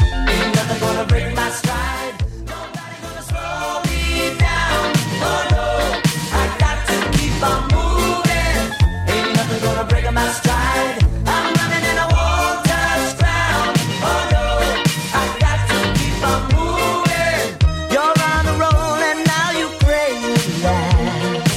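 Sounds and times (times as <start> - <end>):
1980s style music track: 0.0 - 21.5.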